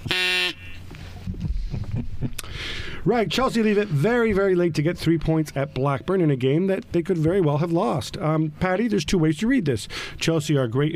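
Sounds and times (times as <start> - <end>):
duck whistle blown: 0.0 - 0.8
speech: 3.0 - 10.9.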